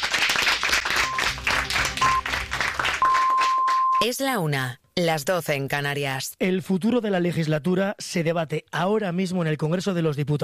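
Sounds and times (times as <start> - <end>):
applause: 0.0 - 4.2
speech: 4.0 - 10.4.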